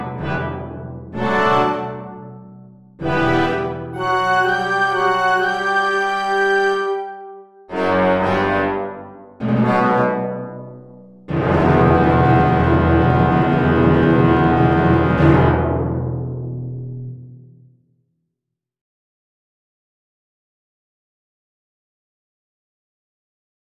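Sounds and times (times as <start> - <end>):
ending of a symphony second movement: 0.0 - 2.3, 3.0 - 16.4.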